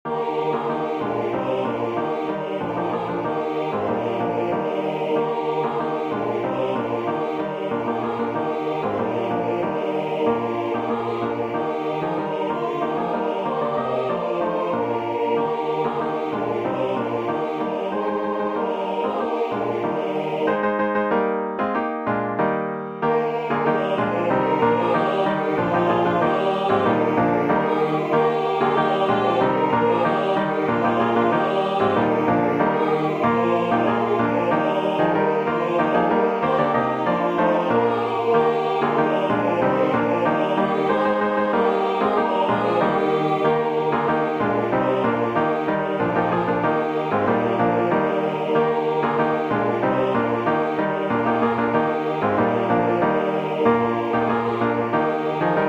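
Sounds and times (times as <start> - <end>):
SATB choir singing: 0.0 - 21.6, 22.8 - 55.6.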